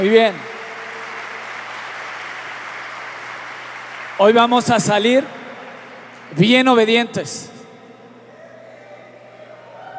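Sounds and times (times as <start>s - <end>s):
speech: 0.0s - 0.5s, 4.2s - 5.4s, 6.3s - 7.5s
audience applauding loudly: 0.0s - 6.6s.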